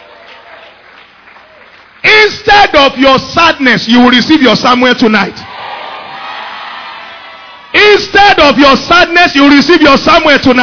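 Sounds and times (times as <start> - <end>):
audience clapping: 0.0 - 2.1
speech: 2.4 - 5.5, 7.9 - 10.6.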